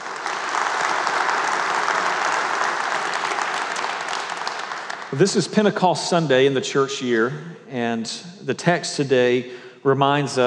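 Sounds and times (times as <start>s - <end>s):
church congregation clapping on Pentecost Sunday: 0.0s - 7.5s
speech: 5.1s - 10.4s.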